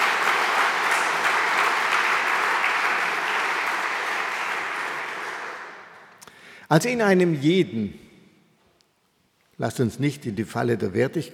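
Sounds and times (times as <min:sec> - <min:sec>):
audience applause: 0:00.0 - 0:06.2
speech: 0:06.7 - 0:08.0, 0:09.6 - 0:11.3.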